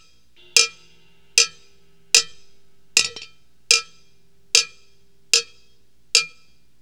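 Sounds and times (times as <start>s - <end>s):
cowbell: 0.4s - 6.5s.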